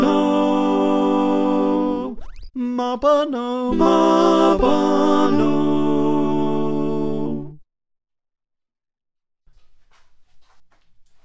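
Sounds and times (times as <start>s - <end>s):
soprano alto tenor bass choir singing: 0.0s - 7.6s.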